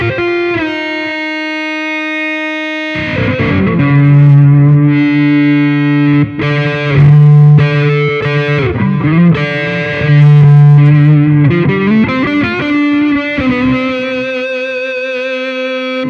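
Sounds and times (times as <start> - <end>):
drone: 2.9 - 14.3.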